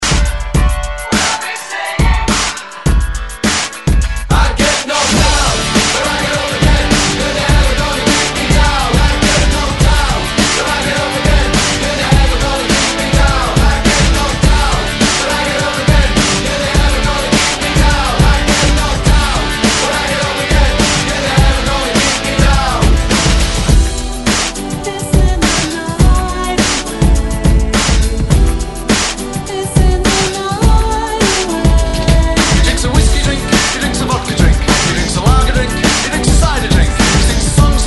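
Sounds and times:
90s drum beat at 104 bpm: 0.0 - 1.4, 2.0 - 37.8.

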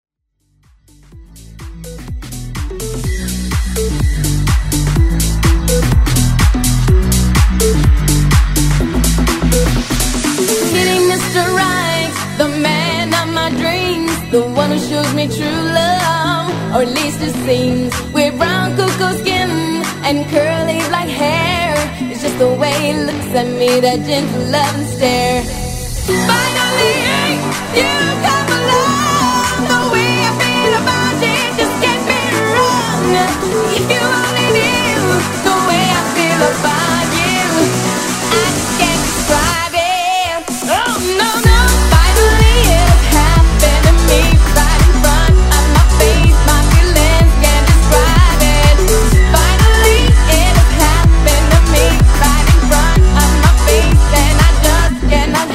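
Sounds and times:
house music vocals: 1.2 - 55.5.

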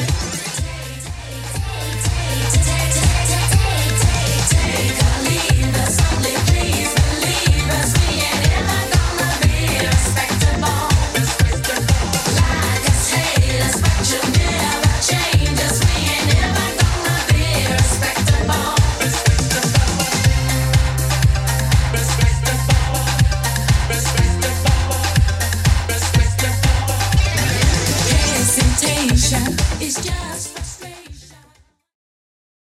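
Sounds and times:
80s style music at 122 bpm: 0.0 - 31.2.

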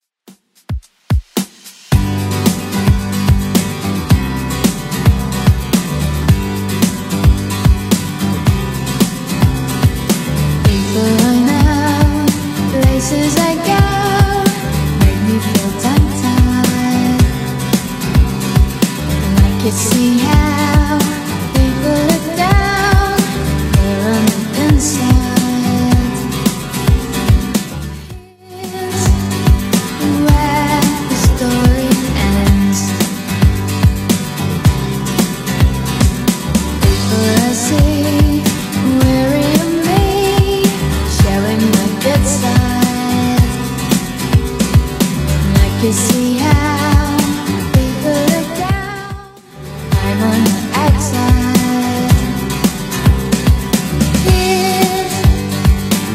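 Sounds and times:
90s music at 110 bpm: 0.2 - 56.1.

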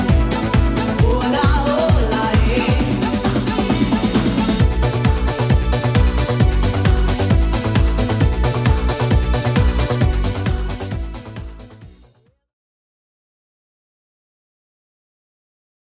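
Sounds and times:
1990s style electronic dance beat: 0.0 - 12.2.

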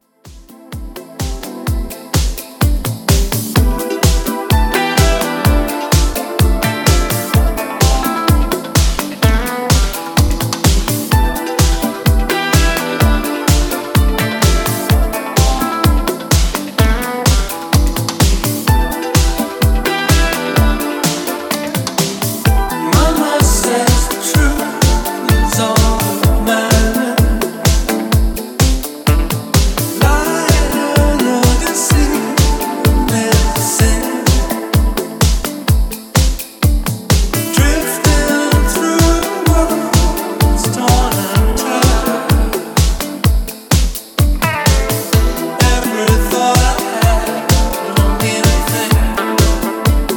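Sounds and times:
club classic mix at 127 BPM: 0.0 - 50.1.

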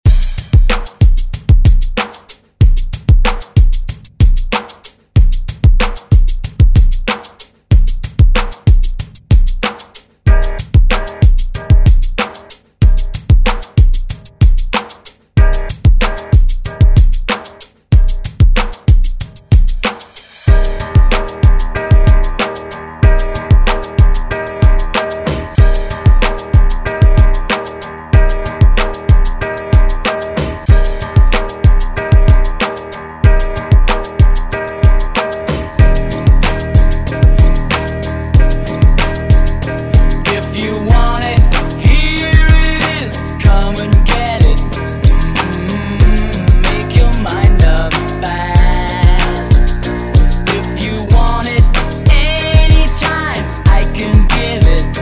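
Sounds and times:
1970s style extended drum groove: 0.0 - 55.0.

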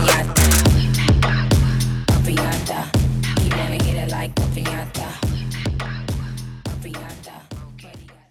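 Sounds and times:
Top40 club rework pop music: 0.0 - 5.4.

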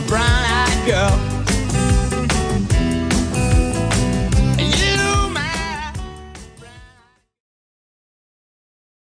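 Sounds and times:
70s drum machine beat at 148 bpm: 0.0 - 7.0.

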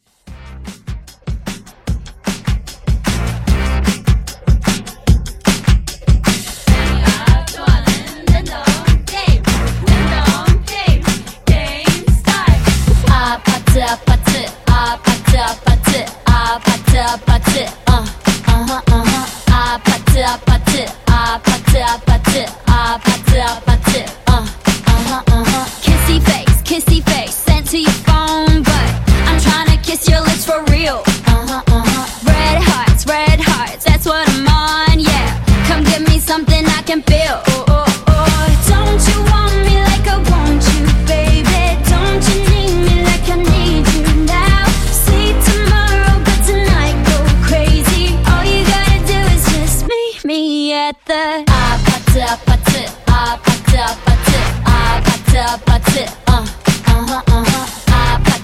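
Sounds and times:
pop rework: 0.3 - 58.4.

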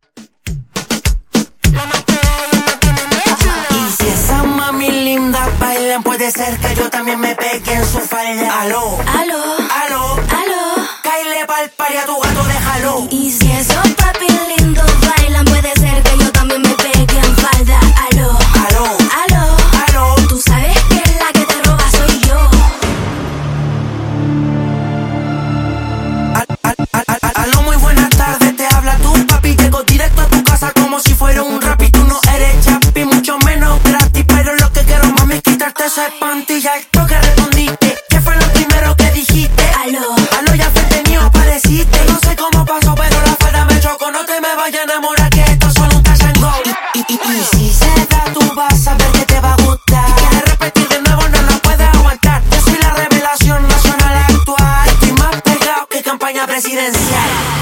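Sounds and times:
top 40 pop intro outro: 0.1 - 57.6.

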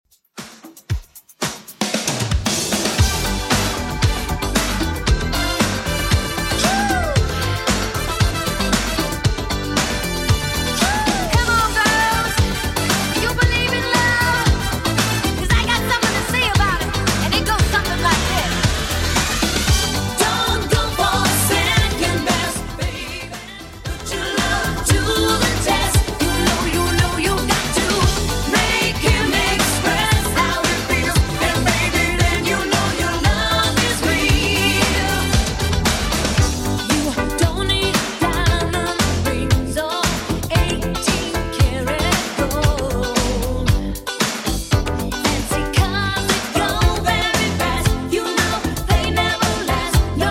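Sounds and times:
1980s style remix music at 115 bpm: 0.4 - 50.3.

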